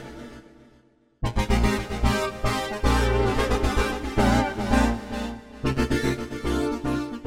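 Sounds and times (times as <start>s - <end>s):
Manx synthesizer sounds: 1.2s - 6.9s.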